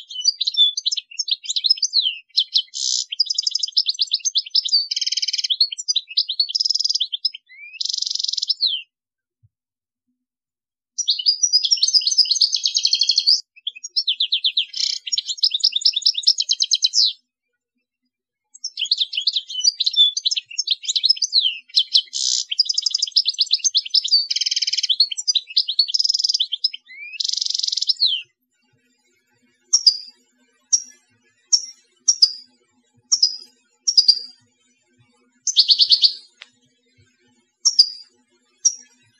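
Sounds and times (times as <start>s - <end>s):
European goldfinch in full song: 0.0s - 8.9s, 11.0s - 17.2s, 18.6s - 28.3s, 29.7s - 30.1s, 30.7s - 32.5s, 33.1s - 34.4s, 35.5s - 36.5s, 37.6s - 38.9s.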